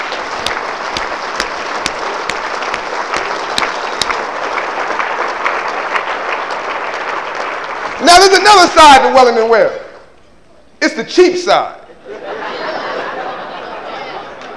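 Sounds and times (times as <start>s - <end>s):
audience applause: 0.0s - 9.0s
speech: 8.0s - 9.8s, 10.8s - 11.8s
laughter: 11.8s - 14.5s.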